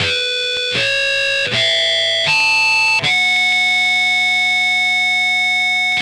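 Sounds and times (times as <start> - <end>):
electric guitar loop: 0.0 - 5.9.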